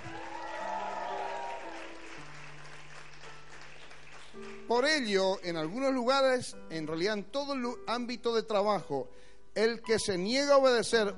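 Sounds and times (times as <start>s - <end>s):
audience applauding loudly: 0.0s - 4.9s
speech: 4.7s - 11.1s.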